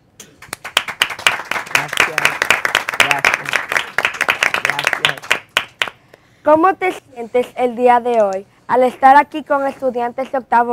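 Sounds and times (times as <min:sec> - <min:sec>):
audience applause: 0:00.5 - 0:05.9
speech: 0:06.5 - 0:10.7.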